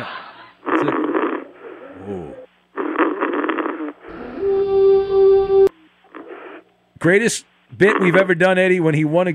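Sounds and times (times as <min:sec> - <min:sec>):
rhythmic snoring over a phone call: 0:00.6 - 0:06.6
speech: 0:02.1 - 0:02.5, 0:07.0 - 0:09.3.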